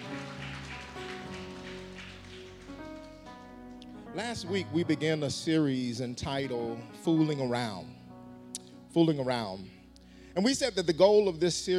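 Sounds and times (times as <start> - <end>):
crowd clapping: 0.0 - 3.8
speech: 4.2 - 8.0, 9.0 - 9.8, 10.4 - 11.7.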